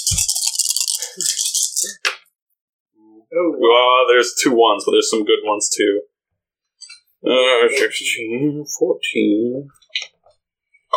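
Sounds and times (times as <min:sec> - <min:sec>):
handful of dice rattling next to microphone: 0:00.0 - 0:02.0
speech: 0:01.0 - 0:02.1, 0:03.3 - 0:06.1, 0:07.2 - 0:10.1.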